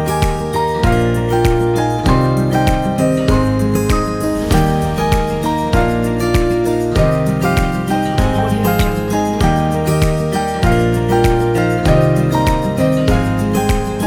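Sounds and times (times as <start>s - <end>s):
inspiring acoustic guitar music: 0.0s - 14.0s.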